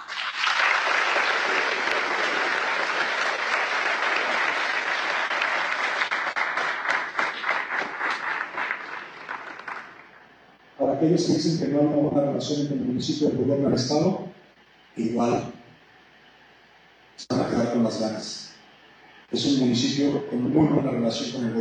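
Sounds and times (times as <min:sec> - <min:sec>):
audience applause: 0:00.0 - 0:10.4
speech: 0:11.0 - 0:14.2, 0:15.0 - 0:15.6, 0:17.9 - 0:18.4, 0:19.3 - 0:21.6.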